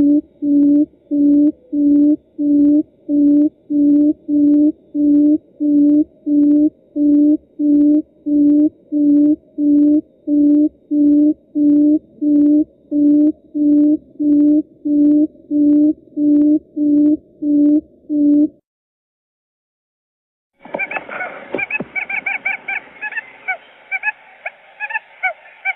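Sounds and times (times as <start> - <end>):
owl hooting: 0.0 - 17.8, 20.6 - 25.7
harsh chattering calls: 20.6 - 25.7.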